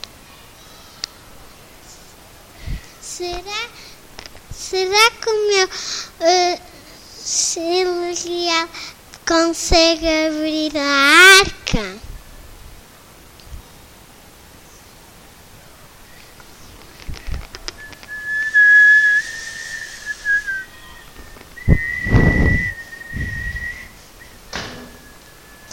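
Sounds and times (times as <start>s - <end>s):
speech: 3.2s - 3.9s, 4.6s - 6.7s, 7.3s - 12.1s
soft rustles: 16.1s - 24.3s
little bird whistling song: 17.8s - 25.7s.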